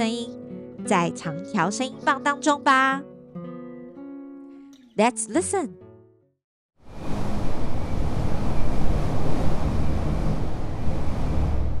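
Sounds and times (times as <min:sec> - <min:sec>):
speech: 0:00.0 - 0:03.1, 0:05.0 - 0:05.8
howling desert wind: 0:06.8 - 0:11.7.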